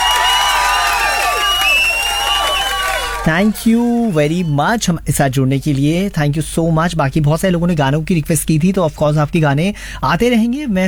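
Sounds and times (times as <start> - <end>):
whistle-like tones: 0.0 - 3.3
loud crowd cheering and shouting: 0.0 - 4.1
speech: 3.2 - 10.8.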